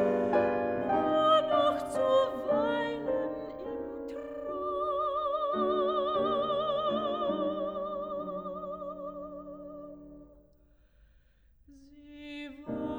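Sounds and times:
person singing: 0.0 - 9.6, 12.2 - 12.9
piano: 0.0 - 10.6, 11.7 - 12.9.

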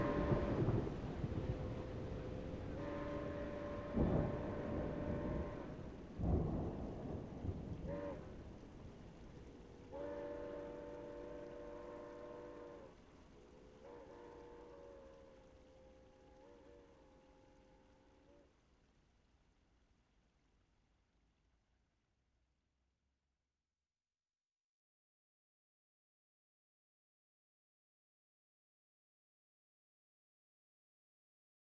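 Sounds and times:
thunderstorm: 0.0 - 12.9
steam locomotive passing in a thunderstorm: 0.0 - 18.5.

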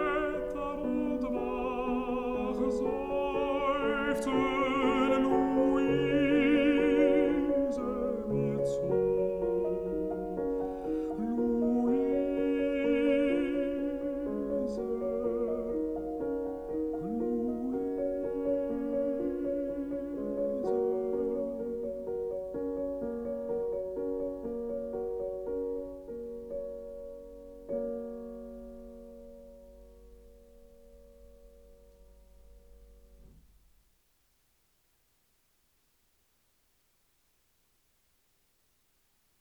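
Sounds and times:
person singing: 0.0 - 22.3
piano: 0.0 - 34.8.

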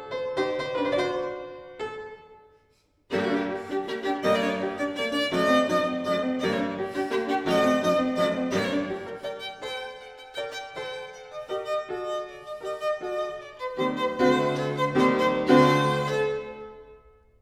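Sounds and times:
piano playing a sonata allegro in G major: 0.0 - 17.4
violin playing a sonata allegro in G major: 3.1 - 17.0.

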